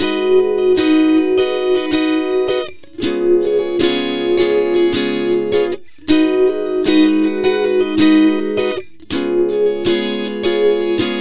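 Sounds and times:
slow-motion funk lounge rhythm guitar in G sharp: 0.0 - 11.1.

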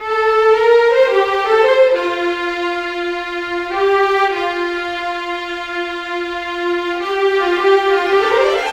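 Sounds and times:
orchestral viola in rock pop: 0.0 - 8.7.

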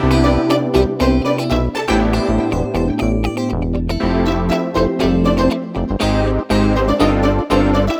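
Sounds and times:
backing track at 120bpm: 0.0 - 7.9.

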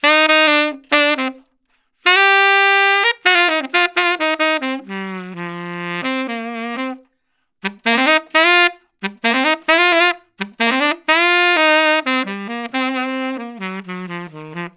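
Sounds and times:
traditional jazz tenor saxophone solo: 0.0 - 14.7.

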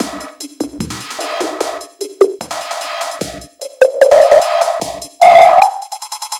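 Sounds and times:
music loop: 0.0 - 6.3.

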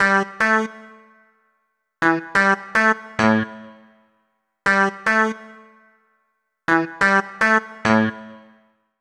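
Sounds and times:
roots funk synth: 0.0 - 1.2, 2.0 - 4.0, 4.6 - 6.0, 6.7 - 8.7.

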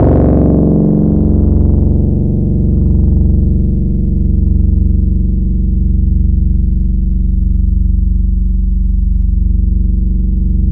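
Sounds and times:
monophonic bass note F#1 on a Yamaha YX81Z synthesizer: 0.0 - 10.7.

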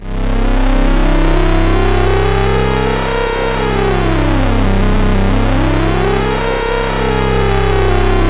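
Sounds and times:
SYN MicroWave synthesizer: 0.0 - 8.2.

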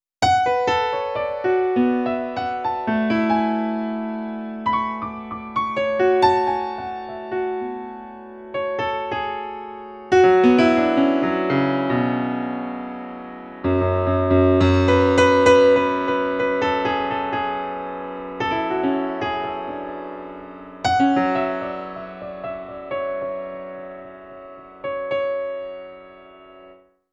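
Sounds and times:
cinematic funk piano solo: 0.2 - 26.9.

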